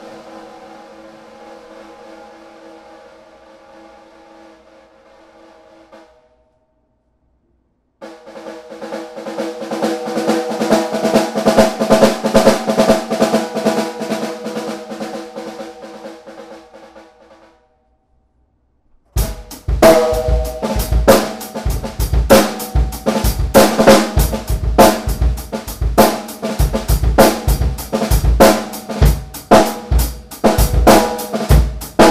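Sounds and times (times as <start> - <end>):
brass snare drum: 8.0 - 17.6, 19.2 - 32.0.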